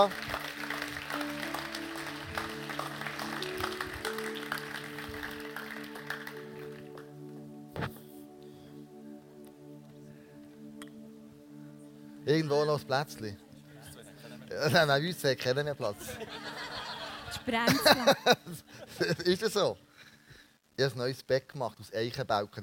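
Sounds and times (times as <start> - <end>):
speech: 0.0 - 0.3, 12.3 - 13.4, 14.6 - 16.5, 17.5 - 19.8, 20.8 - 22.6
audience applause: 0.0 - 7.1
laughter: 15.9 - 19.4.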